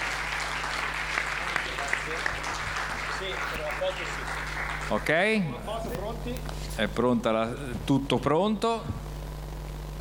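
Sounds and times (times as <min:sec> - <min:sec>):
big round of applause: 0:00.0 - 0:05.6
speech: 0:03.2 - 0:09.0.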